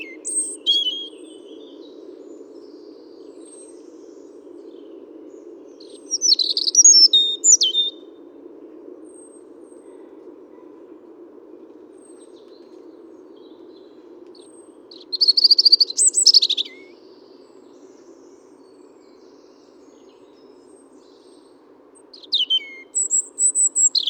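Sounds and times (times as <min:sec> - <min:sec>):
European robin Erithacus rubecula singing: 0:00.0 - 0:01.7, 0:05.8 - 0:08.0, 0:14.9 - 0:17.0, 0:22.1 - 0:24.0.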